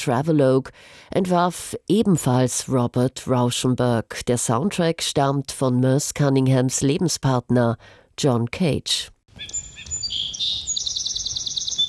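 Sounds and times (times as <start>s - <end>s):
speech: 0.0s - 10.6s
birds chirping in field recording: 9.3s - 11.8s.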